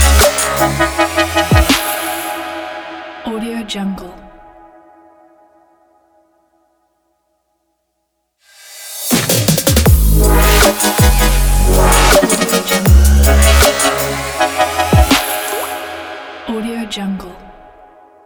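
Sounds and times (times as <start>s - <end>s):
upbeat future bass opener music: 0.0s - 2.7s, 9.1s - 16.5s.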